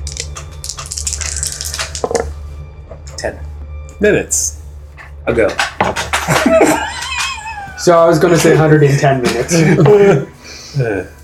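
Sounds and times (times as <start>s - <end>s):
dice being rolled: 0.0s - 2.3s
speech: 3.2s - 4.6s, 5.3s - 6.9s, 7.8s - 11.2s
laughter: 6.2s - 11.0s.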